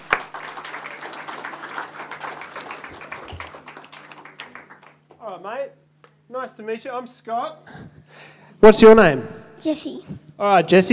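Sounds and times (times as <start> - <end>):
audience clapping for child volunteer: 0.0 - 5.5
speech: 5.4 - 7.9, 8.6 - 10.9.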